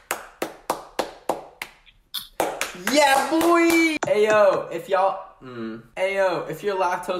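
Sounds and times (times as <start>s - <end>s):
hand claps: 0.0s - 4.6s
speech: 2.8s - 7.1s.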